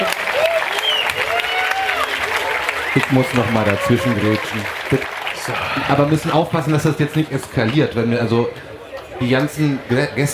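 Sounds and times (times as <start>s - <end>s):
whistle-like cheers: 0.0s - 4.6s
party crowd clapping at a bar event: 0.0s - 7.3s
speech: 3.0s - 10.3s.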